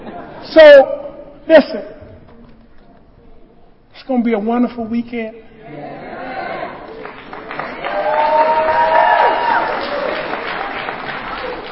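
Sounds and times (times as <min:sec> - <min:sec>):
speech: 0:00.4 - 0:01.9, 0:04.0 - 0:05.9
people cheering and whooping: 0:05.7 - 0:11.7
audience clapping: 0:06.8 - 0:11.7.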